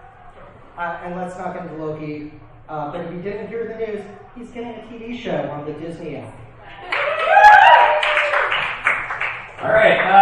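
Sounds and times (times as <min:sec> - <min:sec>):
speech: 0:00.8 - 0:06.4, 0:09.6 - 0:10.1
rising whoop or cheer: 0:06.8 - 0:08.6
audience applause: 0:06.8 - 0:10.1.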